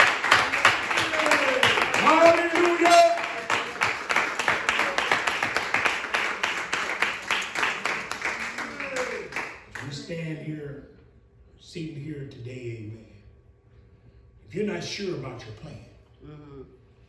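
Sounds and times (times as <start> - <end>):
audience applause: 0.0 - 10.1
speech: 14.5 - 16.8.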